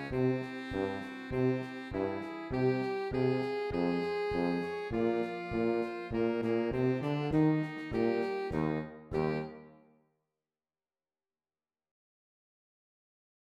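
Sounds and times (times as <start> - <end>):
alto saxophone: 0.0 - 9.9.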